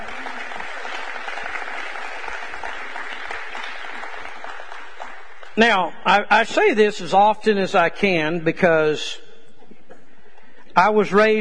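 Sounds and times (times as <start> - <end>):
audience clapping: 0.0 - 5.6
speech: 5.6 - 9.2, 10.8 - 11.3.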